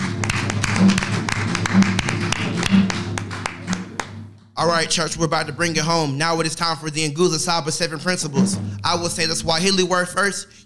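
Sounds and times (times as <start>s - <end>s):
audience hand clapping: 0.0s - 5.1s
speech: 4.6s - 10.6s.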